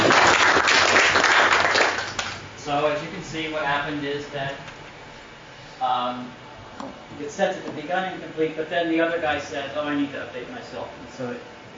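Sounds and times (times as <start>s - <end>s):
audience applause: 0.0s - 2.4s
speech: 3.3s - 4.8s, 5.8s - 11.6s.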